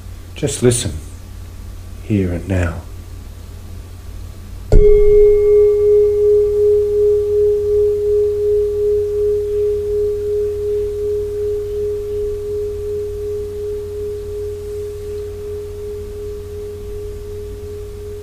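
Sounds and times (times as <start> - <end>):
speech: 0.4 - 1.1, 2.1 - 2.9, 4.8 - 5.4
meditation bell ringing: 4.7 - 18.2.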